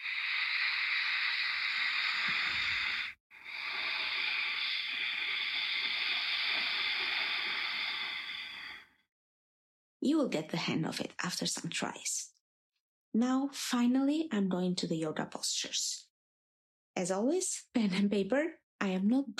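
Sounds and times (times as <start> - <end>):
Ujjayi breathing from a contracted throat: 0.0 - 9.0
speech: 10.0 - 12.2, 13.2 - 16.1, 17.0 - 19.3.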